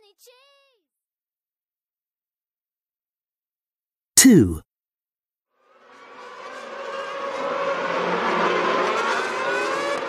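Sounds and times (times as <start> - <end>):
speech: 4.2 - 4.6
race car driven by Lewis Hamilton roaring past: 5.7 - 10.0.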